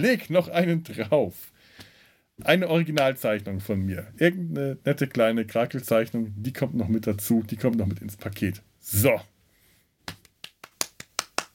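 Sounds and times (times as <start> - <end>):
speech: 0.0 - 1.6, 2.4 - 9.3
hand clapping: 10.0 - 11.5.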